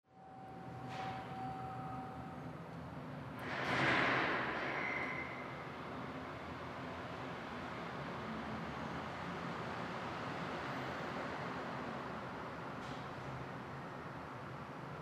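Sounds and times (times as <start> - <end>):
parking deck ambience: 0.1 - 15.0.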